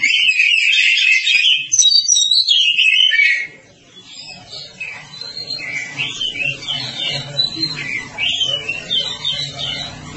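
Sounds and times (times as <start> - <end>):
Oriental magpie-robin song: 0.0 - 10.1
steady low hum: 3.5 - 10.1.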